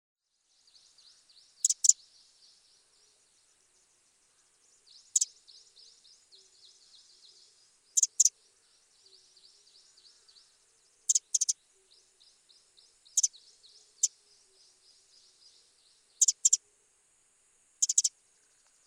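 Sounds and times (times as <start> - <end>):
faint high bird chirps: 0.4 - 16.8, 17.8 - 18.8
Eurasian wren ticking calls: 0.8 - 2.6, 4.3 - 11.6, 12.2 - 15.6, 16.2 - 16.6, 17.8 - 18.8.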